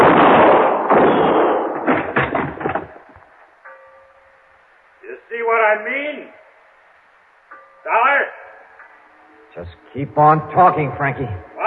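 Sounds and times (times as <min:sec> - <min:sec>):
gunshots in a radio drama: 0:00.0 - 0:03.0
speech: 0:10.0 - 0:11.5.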